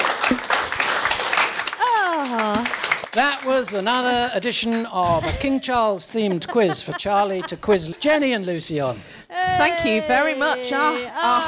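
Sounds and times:
audience standing ovation at a live quiz show: 0.0 - 4.2
speech: 3.2 - 11.4
laughter: 4.4 - 11.4.

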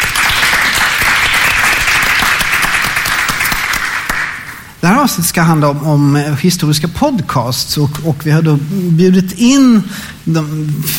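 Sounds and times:
live audience applause: 0.0 - 4.5
speech: 4.8 - 10.9.

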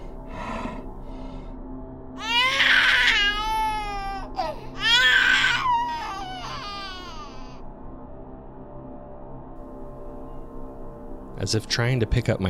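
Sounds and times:
creature giving a baby-like cry: 2.2 - 7.6
speech: 11.4 - 12.4.

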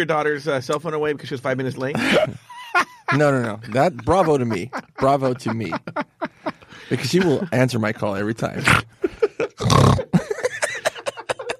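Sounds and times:
speech: 0.0 - 6.0, 6.9 - 9.0
laughter: 1.8 - 11.5
loud deep burp: 9.6 - 10.1.

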